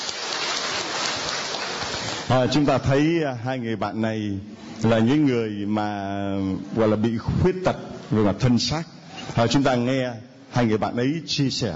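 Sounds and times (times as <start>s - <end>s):
audience applause: 0.0s - 2.3s
speech: 2.3s - 11.7s.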